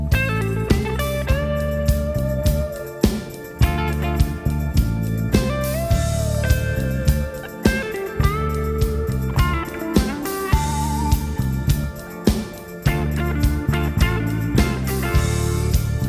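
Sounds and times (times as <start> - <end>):
Axe-Fx guitar solo: 0.1 - 16.0.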